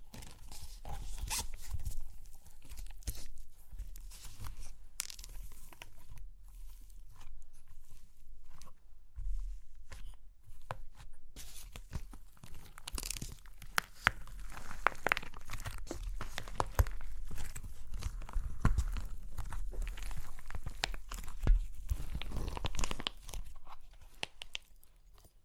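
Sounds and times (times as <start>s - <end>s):
clay crunching and cracking: 0.0s - 25.4s.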